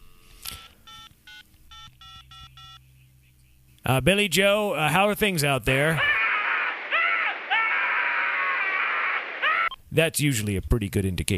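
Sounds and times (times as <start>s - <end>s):
faint hum: 0.0s - 4.8s, 5.5s - 9.9s
telephone touch-tone dialing beeps: 0.6s - 2.8s
speech: 3.9s - 6.2s, 10.0s - 11.3s.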